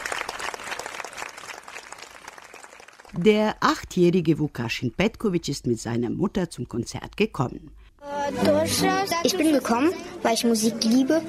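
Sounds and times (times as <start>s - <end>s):
audience applauding at outdoor concert: 0.0s - 3.2s
speech: 3.1s - 11.2s.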